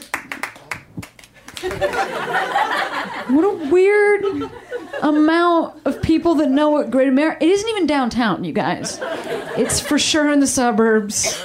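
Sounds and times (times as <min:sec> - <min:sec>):
small audience clapping: 0:00.0 - 0:02.8
people laughing: 0:01.6 - 0:07.2, 0:08.8 - 0:10.3
speech: 0:01.6 - 0:11.4.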